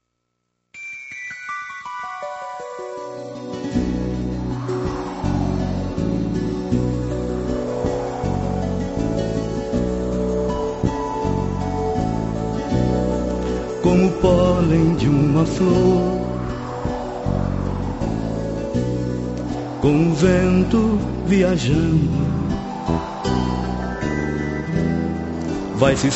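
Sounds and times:
instrumental opening of a song played during a break: 0.8s - 26.1s
speech: 13.9s - 16.2s, 19.8s - 22.3s, 25.8s - 26.1s.

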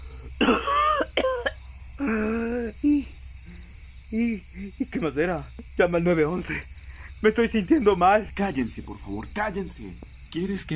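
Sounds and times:
dry harsh voiced coughing and throat-clearing: 0.4s - 2.7s
speech: 4.9s - 10.7s.

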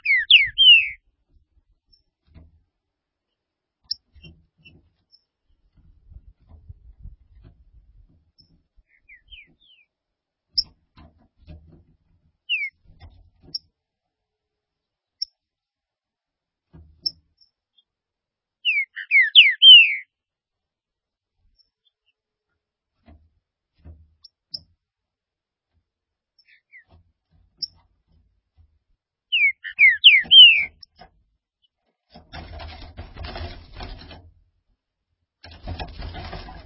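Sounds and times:
green-winged saltator song: 0.0s - 1.0s, 12.5s - 12.7s, 18.6s - 20.1s, 29.3s - 30.8s.

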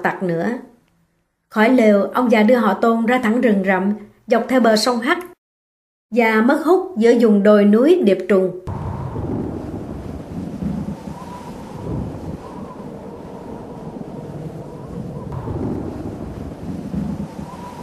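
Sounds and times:
speech: 0.0s - 0.7s, 1.5s - 5.3s, 6.1s - 8.8s
strong forest wind gusting: 8.7s - 17.8s.

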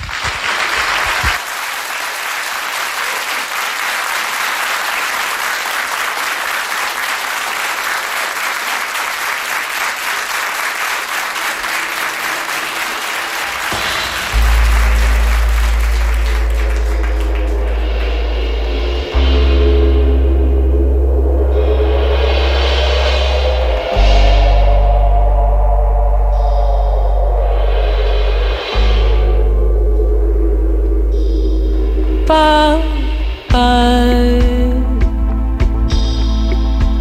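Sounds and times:
audience applause at a concert: 0.0s - 18.8s
low droning musical tones: 12.2s - 37.0s.

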